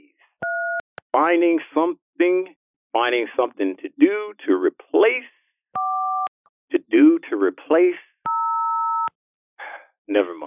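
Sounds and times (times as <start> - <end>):
telephone intercept tone before a number-not-in-service message: 0.4 - 0.8, 5.8 - 6.3, 8.3 - 9.1
speech: 1.3 - 5.9, 6.7 - 8.1, 10.1 - 10.4.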